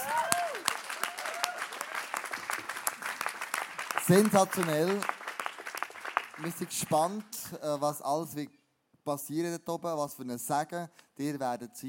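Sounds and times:
audience applause: 0.0s - 7.3s
speech: 4.1s - 5.2s, 6.4s - 11.8s.

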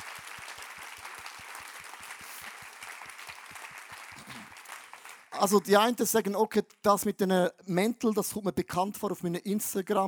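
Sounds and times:
crowd applauding: 0.0s - 5.6s
speech: 5.4s - 10.0s.

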